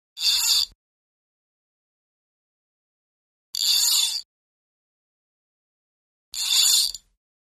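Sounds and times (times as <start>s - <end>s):
heavy spinning fishing reel line: 0.2s - 0.8s, 3.6s - 4.2s, 6.4s - 7.0s.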